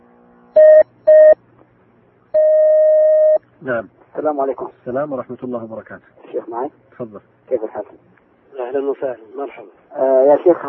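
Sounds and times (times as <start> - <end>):
long steady telephone tone as a caller is connected: 0.6 - 1.4, 2.4 - 3.4
speech: 3.6 - 10.6.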